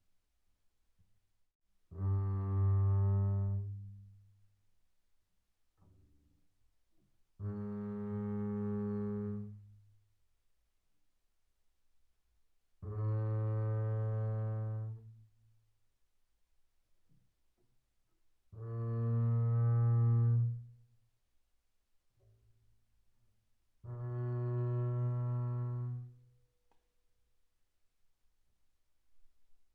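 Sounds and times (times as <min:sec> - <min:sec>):
double bass bowed on the E string mezzo forte C2 to B2: 0:02.0 - 0:04.3, 0:07.4 - 0:09.7, 0:12.8 - 0:15.1, 0:18.6 - 0:20.9, 0:23.8 - 0:26.2.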